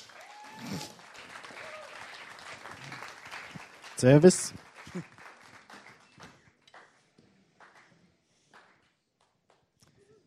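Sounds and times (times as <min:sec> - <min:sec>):
audience applause: 0:00.0 - 0:07.0
speech: 0:04.0 - 0:05.1.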